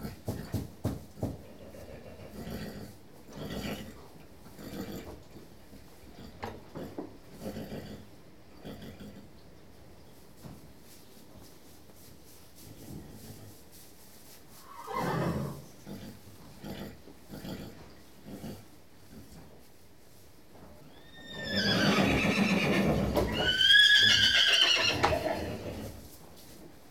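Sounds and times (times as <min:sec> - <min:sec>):
horse whinnying: 0:14.6 - 0:15.6, 0:20.9 - 0:25.9.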